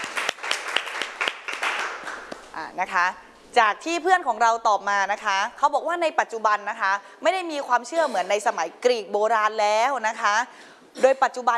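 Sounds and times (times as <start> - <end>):
small group hand clapping: 0.0 - 2.5
speech: 2.6 - 11.5.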